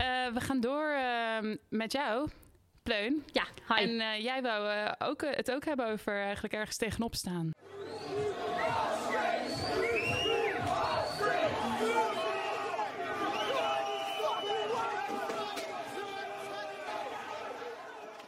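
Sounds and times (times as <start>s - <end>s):
speech: 0.3s - 8.2s
crowd of discontented protesters shouting and chanting: 7.6s - 18.2s.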